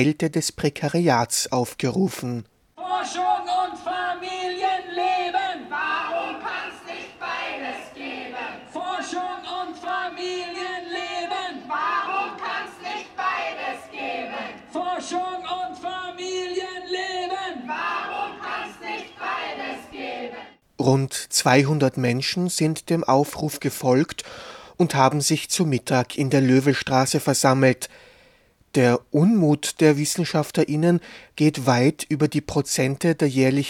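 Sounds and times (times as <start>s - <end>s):
speech: 0.0s - 3.3s, 20.8s - 28.1s, 28.7s - 33.6s
protest crowd chanting: 2.8s - 20.6s
protesters shouting: 4.8s - 9.4s, 11.5s - 14.6s, 17.6s - 20.3s.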